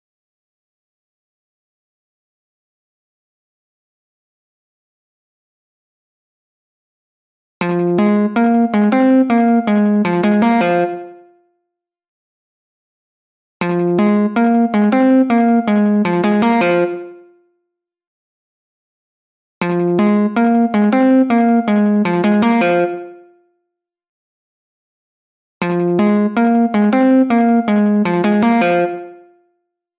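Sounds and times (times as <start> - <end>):
guitar: 7.6 - 11.4, 13.6 - 17.4, 19.6 - 23.4, 25.6 - 29.4.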